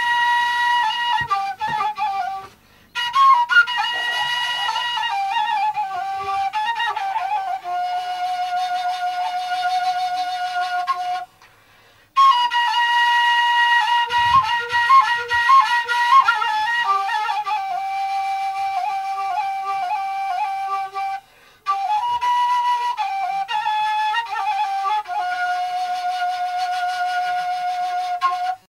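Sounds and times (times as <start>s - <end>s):
ney taleshi: 0.0s - 28.7s.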